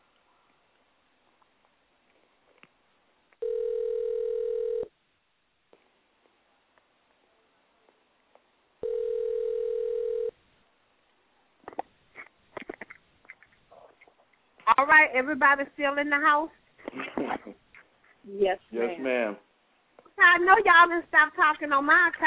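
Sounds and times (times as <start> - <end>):
telephone tone after a dropped call: 3.4 - 4.9, 8.8 - 10.3
speech: 14.9 - 16.6, 18.3 - 19.5, 20.2 - 22.2.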